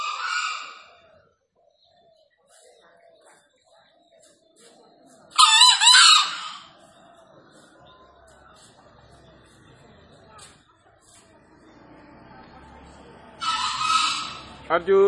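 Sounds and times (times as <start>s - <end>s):
green junglefowl crowing: 0.0s - 1.1s, 5.4s - 6.8s, 13.3s - 15.0s.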